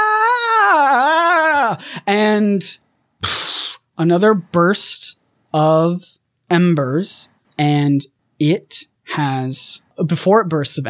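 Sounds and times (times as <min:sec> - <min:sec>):
ghostly wailing scream: 0:00.0 - 0:01.8
speech: 0:01.8 - 0:03.4, 0:04.0 - 0:10.8.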